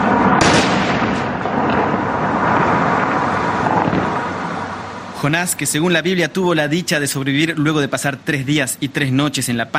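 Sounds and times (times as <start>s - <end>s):
dynamite explosions demolishing a temple: 0.0s - 5.2s
speech: 5.2s - 9.7s.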